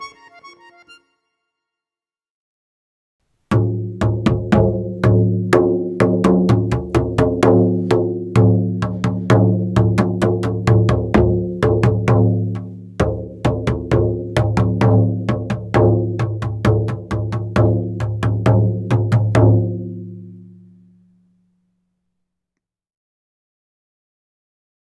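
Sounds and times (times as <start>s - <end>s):
instrumental music: 0.0s - 1.7s, 3.5s - 21.3s.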